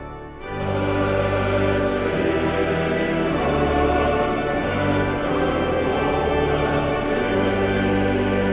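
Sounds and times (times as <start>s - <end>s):
male choir singing a psalm: 0.4s - 8.4s.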